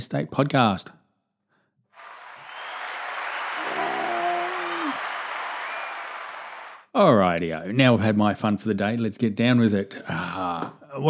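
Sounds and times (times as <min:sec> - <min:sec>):
speech: 0:00.0 - 0:01.0, 0:07.0 - 0:11.0
round of applause sound effect played from a soundboard: 0:02.0 - 0:06.9.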